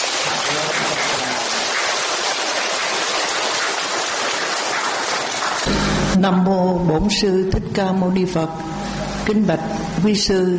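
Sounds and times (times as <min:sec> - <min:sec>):
applause: 0:00.0 - 0:06.2
speech: 0:06.2 - 0:08.7, 0:09.3 - 0:10.5.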